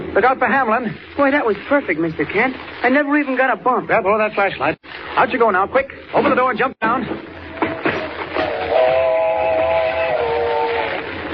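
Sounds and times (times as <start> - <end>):
speech: 0.2 - 7.4
sustained chord-like train whistle: 8.3 - 11.0.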